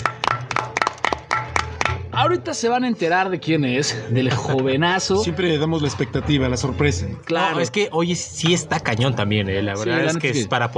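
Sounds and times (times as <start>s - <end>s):
small group clapping: 0.0s - 2.2s
speech: 2.2s - 10.7s.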